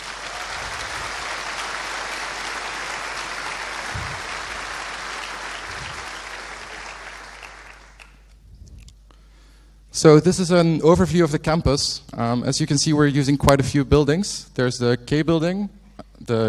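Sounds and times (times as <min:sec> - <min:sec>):
audience round of applause: 0:00.0 - 0:08.3
speech: 0:10.0 - 0:16.4.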